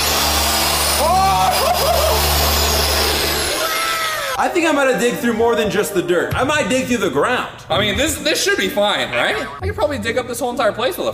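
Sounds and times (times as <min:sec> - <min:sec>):
large power drill running: 0:00.0 - 0:04.4
speech: 0:04.4 - 0:11.1.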